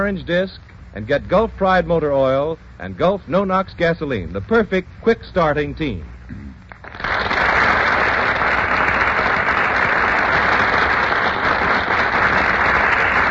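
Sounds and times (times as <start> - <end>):
speech: 0.0 - 6.4
studio audience applause: 6.7 - 13.2.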